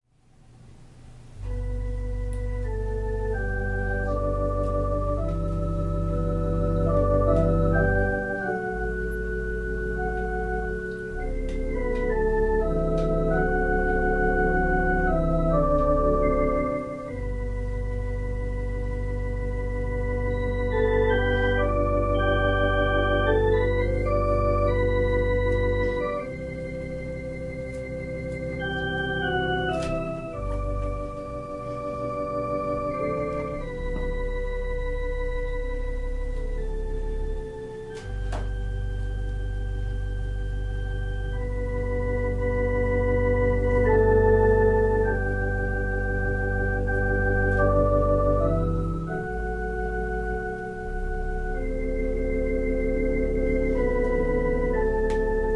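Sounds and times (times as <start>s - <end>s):
organ playing a prelude: 1.0s - 55.5s.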